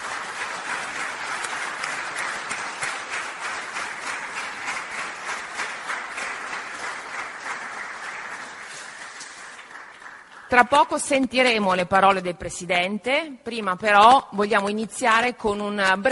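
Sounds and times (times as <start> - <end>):
audience applause welcoming a speaker: 0.0 - 10.6
speech: 10.5 - 16.1.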